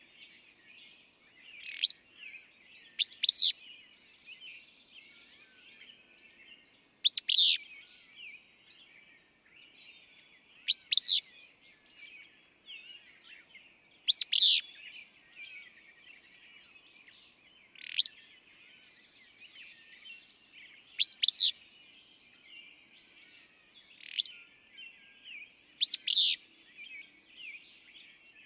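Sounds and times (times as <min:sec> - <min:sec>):
willow flycatcher burry two-note song: 0:00.0 - 0:28.4.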